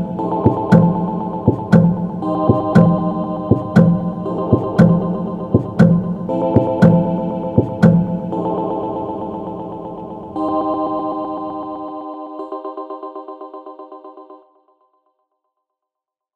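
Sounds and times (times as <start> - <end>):
electro music: 0.0 - 12.8.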